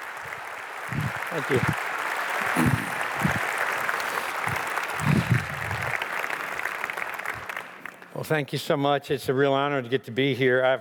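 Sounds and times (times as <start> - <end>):
audience applause welcoming a speaker at Northview: 0.0 - 8.0
speech: 0.9 - 1.9, 8.3 - 10.7.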